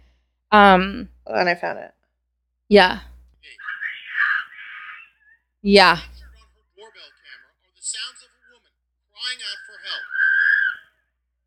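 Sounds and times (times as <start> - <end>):
speech: 0.5 - 2.0, 2.7 - 3.6, 5.6 - 6.1
person screaming in a recording: 10.0 - 10.8.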